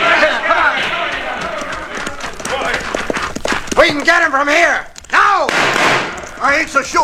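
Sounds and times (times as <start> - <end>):
horses with riders at full gallop: 0.0 - 7.0
speech: 3.9 - 5.6, 6.4 - 7.0.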